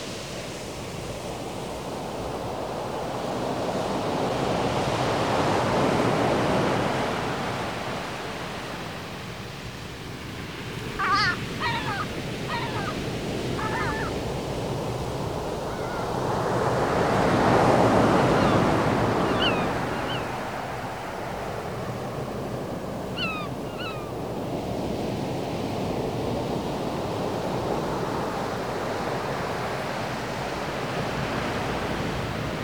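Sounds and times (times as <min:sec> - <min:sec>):
ocean surf: 0:00.0 - 0:32.6
high chirping bird calls: 0:11.0 - 0:14.2, 0:15.6 - 0:16.2, 0:18.0 - 0:20.5, 0:23.2 - 0:24.1.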